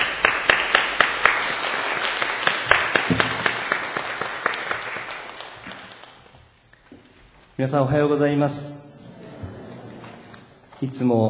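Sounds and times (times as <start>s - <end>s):
audience applause: 0.0s - 6.3s
speech: 7.6s - 8.8s, 10.8s - 11.2s.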